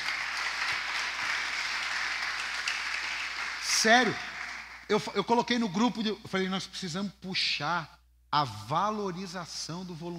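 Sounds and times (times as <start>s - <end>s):
church audience applauding: 0.0s - 4.9s
speech: 3.8s - 4.3s, 4.9s - 10.1s.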